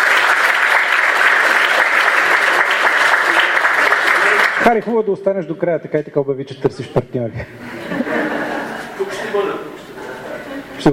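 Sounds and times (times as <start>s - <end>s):
large audience applause: 0.0s - 4.8s
speech: 4.7s - 8.3s
laughter: 7.3s - 10.9s.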